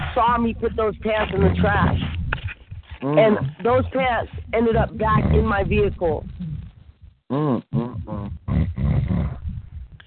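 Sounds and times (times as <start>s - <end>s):
speech: 0.2s - 2.2s, 3.0s - 6.5s, 7.3s - 7.7s
person snoring: 7.3s - 9.5s.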